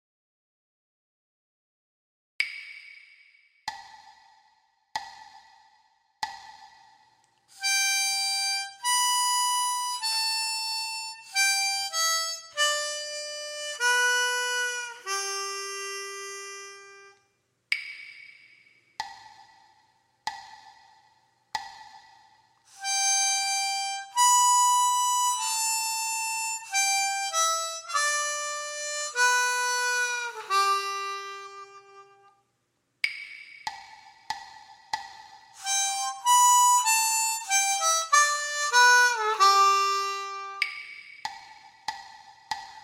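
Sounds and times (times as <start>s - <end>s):
gaita blues lick: 7.5s - 17.2s, 22.7s - 32.4s, 35.6s - 41.4s.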